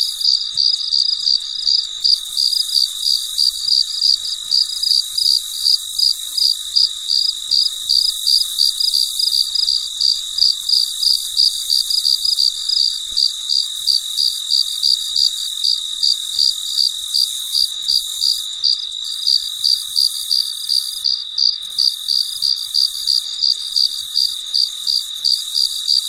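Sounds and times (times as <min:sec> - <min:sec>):
cricket chirping: 0:00.0 - 0:26.0
insect drone: 0:00.0 - 0:26.0.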